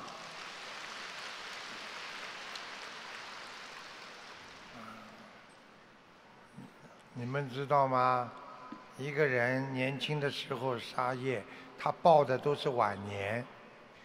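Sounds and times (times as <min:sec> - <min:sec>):
applause: 0:00.0 - 0:05.4
speech: 0:07.2 - 0:08.4, 0:09.0 - 0:13.6.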